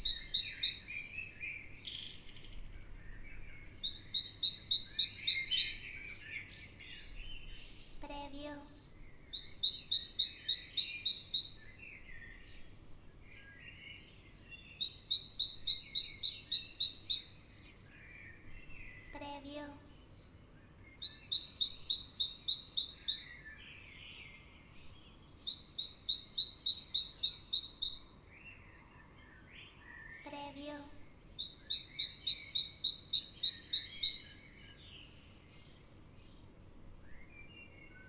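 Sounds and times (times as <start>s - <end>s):
birds singing in the morning: 0.0s - 38.0s.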